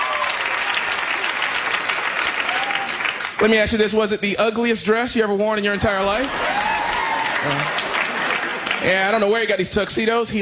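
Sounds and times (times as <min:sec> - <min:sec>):
audience clapping: 0:00.0 - 0:03.9, 0:06.2 - 0:09.5
speech: 0:03.4 - 0:06.6, 0:07.4 - 0:07.8, 0:08.8 - 0:10.3.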